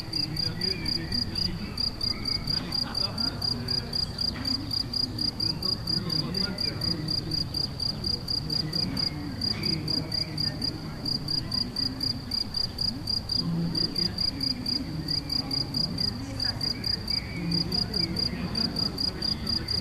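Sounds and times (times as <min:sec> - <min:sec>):
crickets chirping in Galicia: 0:00.0 - 0:19.7
laughter: 0:00.4 - 0:09.0.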